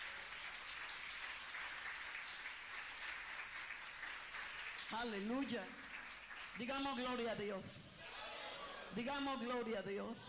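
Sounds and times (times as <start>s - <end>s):
crowd applauding: 0.0s - 7.1s
speech: 4.9s - 5.8s, 6.6s - 7.9s, 8.9s - 10.2s.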